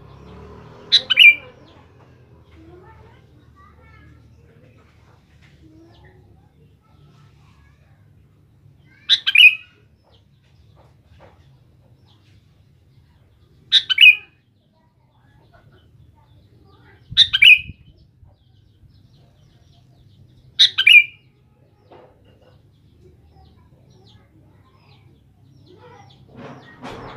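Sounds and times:
Sooty-headed bulbul singing: 0.0 - 1.9, 8.9 - 10.2, 13.6 - 14.8, 16.8 - 25.8.

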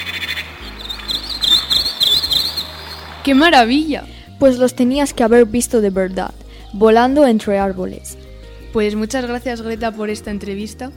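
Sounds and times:
birdsong played from old cassette recording: 0.0 - 3.8
speech: 3.2 - 8.1, 8.7 - 10.9.

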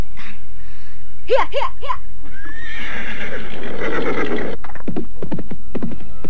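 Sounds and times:
speech: 1.3 - 3.0
horse neighing: 2.4 - 4.6
horse hooves clip-clopping: 3.5 - 6.2.

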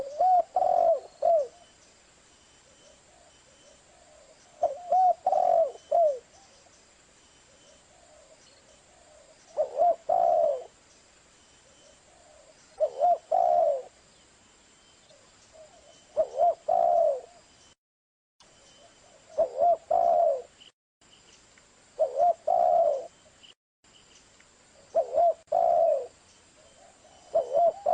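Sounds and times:
spotted dove cooing: 0.0 - 1.7, 3.9 - 6.4, 7.9 - 10.8, 12.0 - 14.0, 15.5 - 17.4, 18.8 - 20.6, 22.0 - 23.1, 24.8 - 27.9.

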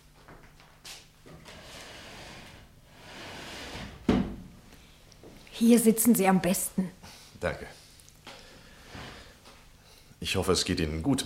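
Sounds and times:
chair being moved into place: 1.3 - 4.5, 8.8 - 9.4
speech: 5.6 - 7.8, 10.2 - 11.2.

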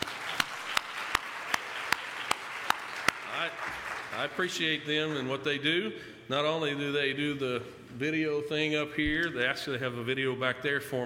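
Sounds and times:
audience applause for the sound crew: 0.0 - 4.6
speech: 4.2 - 11.0.

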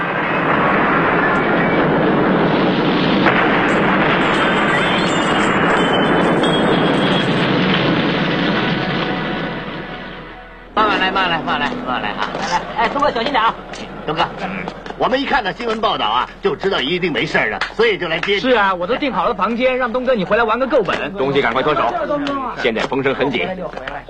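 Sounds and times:
loud gas explosion caused by gas left turned on: 0.0 - 20.6
speech: 13.1 - 24.0.

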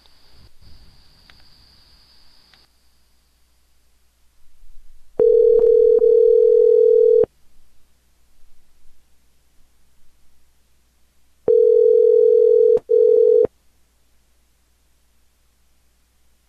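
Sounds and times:
telephone line tone while calling someone back: 5.2 - 7.3, 11.5 - 13.5.

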